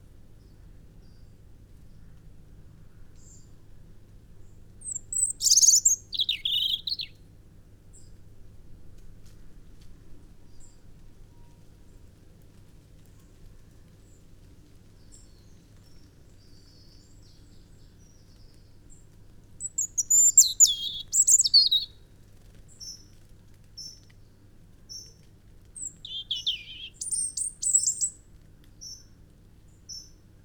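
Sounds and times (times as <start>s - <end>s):
faint background hiss: 0.0s - 30.4s
European robin song: 4.9s - 7.1s, 19.6s - 21.9s, 25.8s - 28.1s.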